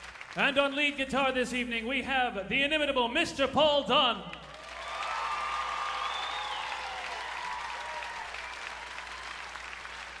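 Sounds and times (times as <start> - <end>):
audience applause: 0.0 - 0.6, 4.4 - 10.1
speech: 0.4 - 4.4.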